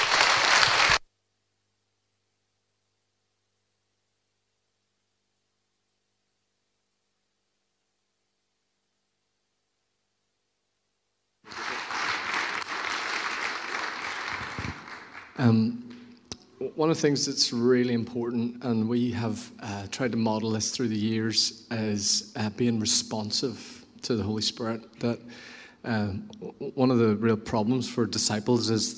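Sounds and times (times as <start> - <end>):
audience applause: 0.0 - 1.0, 11.5 - 16.0
speech: 15.4 - 15.8, 16.6 - 28.9.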